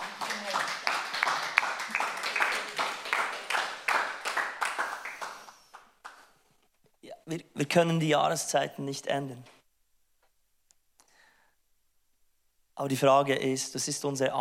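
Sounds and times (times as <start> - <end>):
audience applause: 0.0 - 6.3
speech: 7.3 - 9.6, 12.8 - 14.3.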